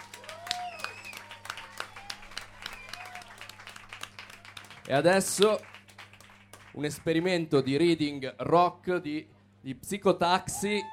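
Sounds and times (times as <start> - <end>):
audience applause: 0.0 - 7.4
speech: 4.9 - 5.7, 6.8 - 10.9.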